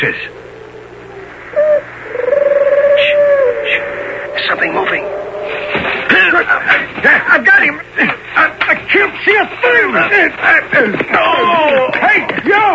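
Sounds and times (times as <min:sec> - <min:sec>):
speech: 0:00.0 - 0:00.4, 0:04.6 - 0:05.1, 0:06.3 - 0:12.7
voices imitating owl hoots: 0:00.0 - 0:06.8
low hum: 0:00.0 - 0:12.7.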